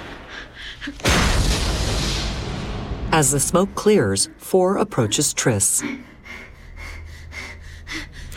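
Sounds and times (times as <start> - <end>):
speech: 0.8 - 1.6, 3.2 - 6.2
testing room doors exploding: 1.0 - 3.2.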